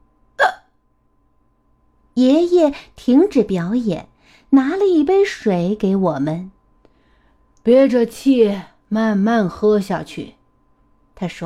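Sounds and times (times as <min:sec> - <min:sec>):
hiccups: 0:00.4 - 0:00.8
speech: 0:02.2 - 0:06.6, 0:07.6 - 0:10.4, 0:11.2 - 0:11.4.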